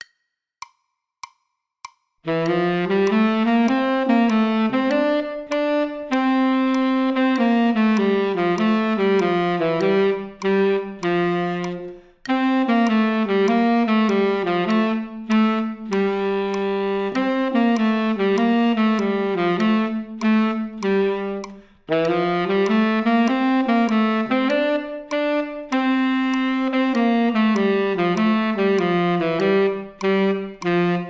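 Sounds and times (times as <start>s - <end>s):
tenor saxophone playing running eighth notes: 2.2s - 31.0s.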